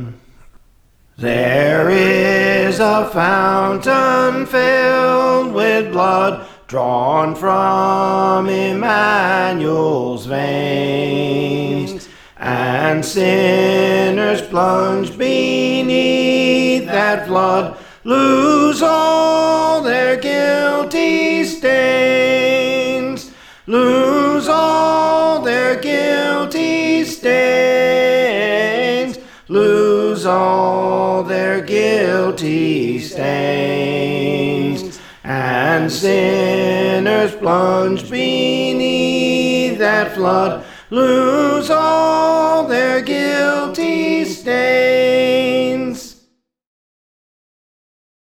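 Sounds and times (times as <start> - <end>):
soprano singing: 1.2 - 46.0.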